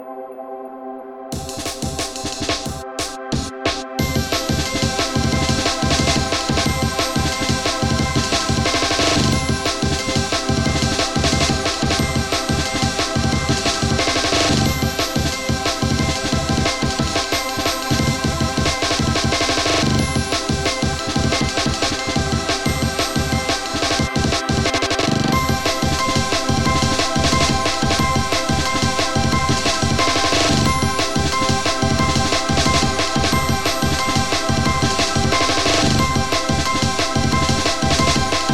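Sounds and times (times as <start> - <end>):
battle music: 1.4 - 38.5.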